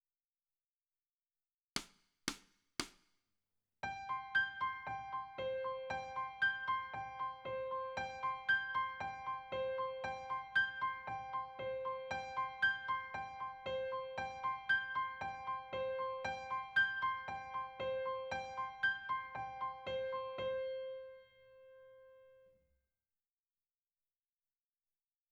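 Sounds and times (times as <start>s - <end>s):
piano: 3.8s - 22.6s.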